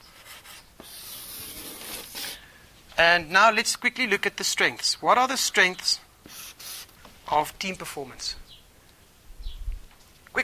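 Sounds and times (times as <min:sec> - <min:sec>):
writing on a board: 0:00.0 - 0:02.4, 0:06.3 - 0:06.9
speech: 0:03.0 - 0:06.0, 0:07.3 - 0:08.4.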